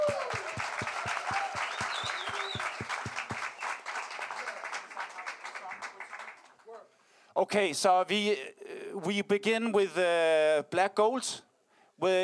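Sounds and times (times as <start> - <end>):
audience applause: 0.0 - 6.6
speech: 7.4 - 12.2.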